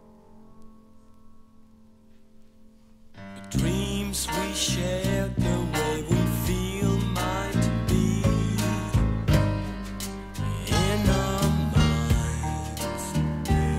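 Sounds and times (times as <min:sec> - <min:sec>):
Latin jazz and jazz-funk fusion music: 0:03.5 - 0:13.7.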